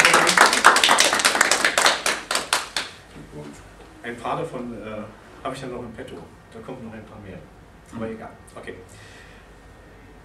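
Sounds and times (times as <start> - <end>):
one person clapping hands: 0.0 - 3.0
speech: 4.2 - 9.2.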